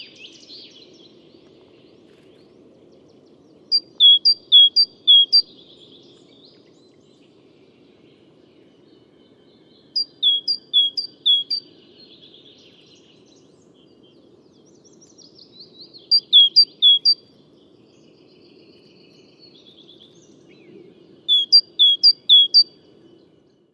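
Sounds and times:
great tit calling: 0:03.7 - 0:05.4, 0:10.0 - 0:11.6, 0:16.1 - 0:17.2, 0:21.2 - 0:22.7.

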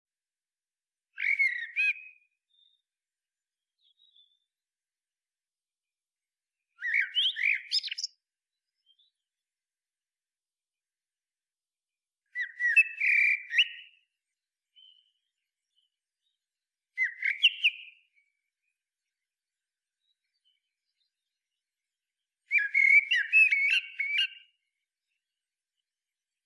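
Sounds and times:
Common blackbird singing: 0:01.2 - 0:02.8, 0:06.8 - 0:08.2, 0:12.4 - 0:14.0, 0:17.0 - 0:18.1, 0:22.5 - 0:24.5.

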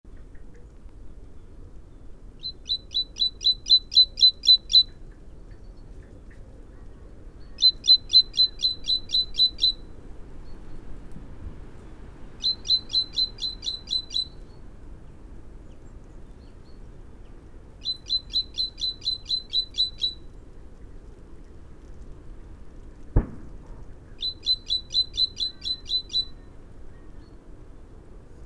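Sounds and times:
soft low hiss: 0:00.1 - 0:28.4
great tit calls: 0:02.4 - 0:05.0, 0:07.6 - 0:09.9, 0:12.4 - 0:14.4, 0:17.8 - 0:20.3, 0:24.2 - 0:26.5.

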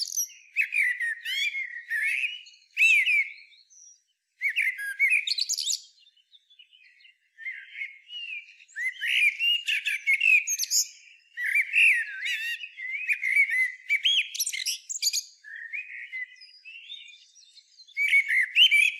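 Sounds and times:
common blackbird Turdus merula fluty warbling song with squeaks and chatter: 0:00.0 - 0:18.9.

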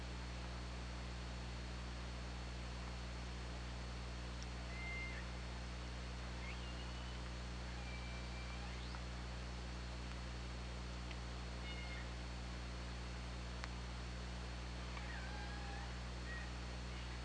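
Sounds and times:
low humming: 0:00.0 - 0:17.2
killer whale calls: 0:06.4 - 0:07.2.

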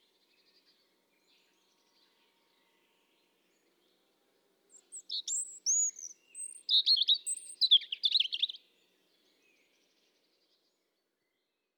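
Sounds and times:
European robin song: 0:04.8 - 0:08.6.

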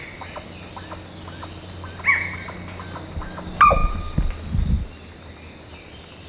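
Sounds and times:
bird sharp notes: 0:02.1 - 0:04.9
steady high background drone: 0:03.1 - 0:04.9.

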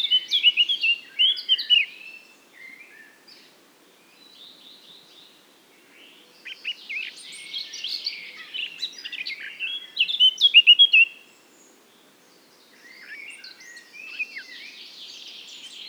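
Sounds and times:
Eurasian blackcap song: 0:00.0 - 0:03.5, 0:05.9 - 0:11.2, 0:12.6 - 0:15.8.

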